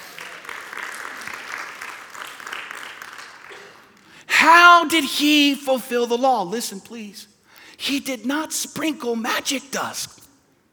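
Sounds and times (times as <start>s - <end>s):
audience applause: 0.0s - 4.2s
speech: 4.4s - 10.2s.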